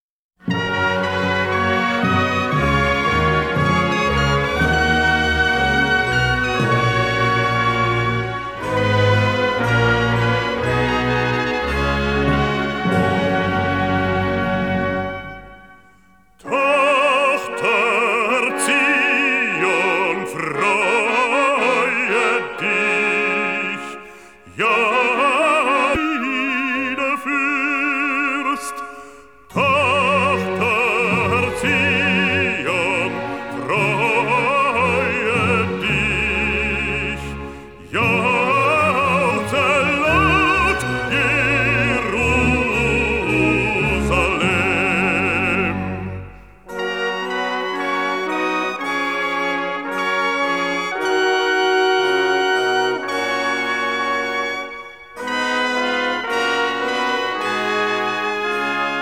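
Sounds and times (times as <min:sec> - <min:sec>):
baritone singing with orchestra: 0:00.5 - 0:15.4, 0:16.4 - 0:59.0.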